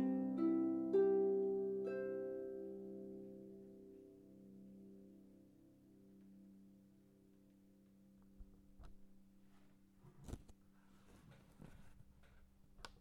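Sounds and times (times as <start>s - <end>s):
harp: 0.0s - 8.2s.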